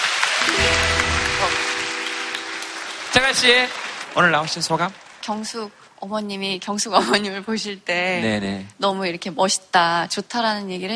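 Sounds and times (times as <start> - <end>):
audience applause: 0.0 - 5.2
speech: 3.3 - 10.9.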